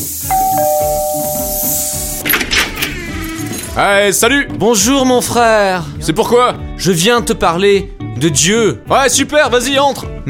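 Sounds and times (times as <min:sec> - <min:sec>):
two-tone doorbell ringing at a home: 0:00.3 - 0:02.5
speech: 0:03.8 - 0:10.2.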